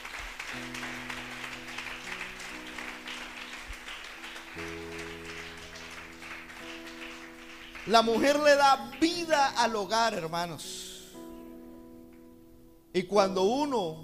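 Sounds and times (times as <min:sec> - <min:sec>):
audience applause: 0:00.0 - 0:09.1
speech: 0:07.9 - 0:10.8, 0:13.0 - 0:14.0.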